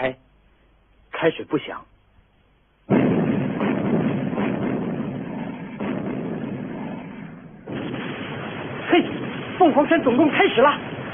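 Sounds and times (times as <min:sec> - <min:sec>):
speech: 0:00.0 - 0:00.2, 0:01.2 - 0:01.9, 0:09.0 - 0:10.9
howitzers, guns and mortars firing in a barrage: 0:02.9 - 0:11.1.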